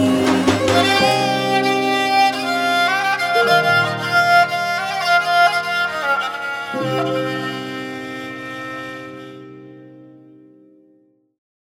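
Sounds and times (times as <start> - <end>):
Khorramabadi folk lullaby singing: 0.0 - 9.1.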